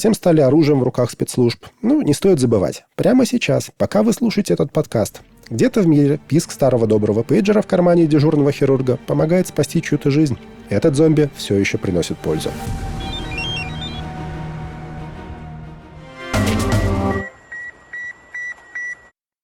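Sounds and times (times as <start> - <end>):
speech: 0.0 - 12.9
fax machine connection tones: 16.6 - 19.1.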